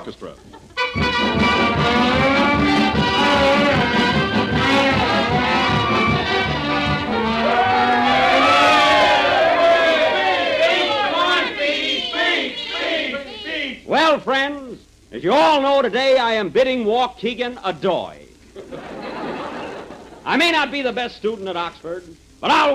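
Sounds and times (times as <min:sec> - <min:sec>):
speech: 0:00.0 - 0:02.1, 0:15.2 - 0:18.2, 0:20.2 - 0:22.7
crowd at railroad station murmuring and cheering: 0:00.9 - 0:13.9
laughter: 0:18.6 - 0:20.3.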